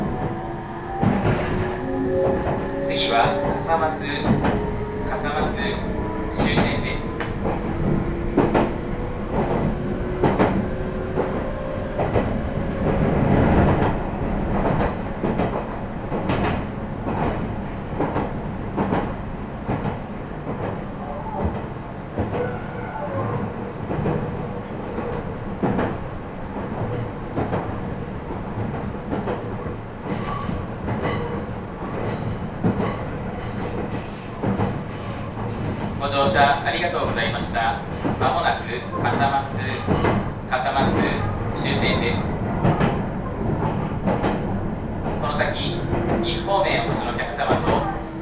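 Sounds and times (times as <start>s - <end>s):
train running on rails: 0.0s - 48.2s
speech: 3.2s - 4.6s.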